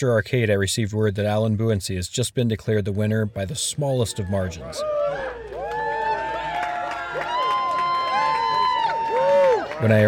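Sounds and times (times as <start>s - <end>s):
speech: 0.0s - 5.4s, 9.8s - 10.0s
crowd cheering: 3.3s - 10.0s.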